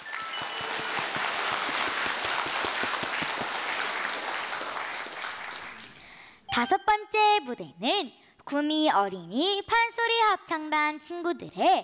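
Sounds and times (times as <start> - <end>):
audience applause: 0.0 - 6.1
speech: 6.6 - 11.8.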